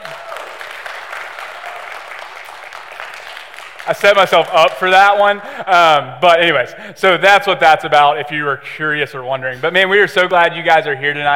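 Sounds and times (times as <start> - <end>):
group of people clapping during a worship service: 0.0 - 5.4
speech: 3.9 - 11.3.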